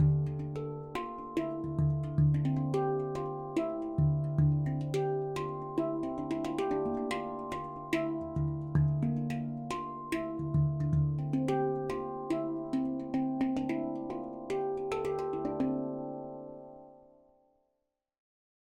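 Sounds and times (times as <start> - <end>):
D Kurd 10 handpan tuned to 440 Hz: 0.0 - 17.3.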